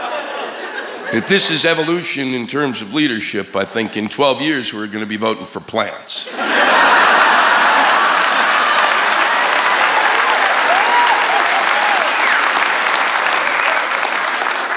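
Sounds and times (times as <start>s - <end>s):
laughter: 0.0s - 12.5s
speech: 1.1s - 7.0s
audience applause: 6.3s - 14.7s.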